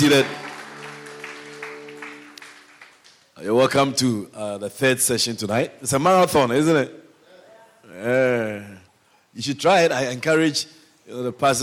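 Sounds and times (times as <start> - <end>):
speech: 0.0 - 0.4, 3.4 - 7.0, 8.0 - 11.6
audience hand clapping: 0.0 - 3.4.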